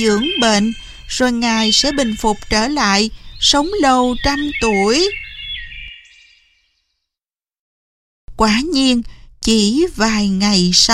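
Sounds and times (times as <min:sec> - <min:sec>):
speech: 0:00.0 - 0:05.2, 0:08.4 - 0:10.9
nightingale singing: 0:00.0 - 0:06.9.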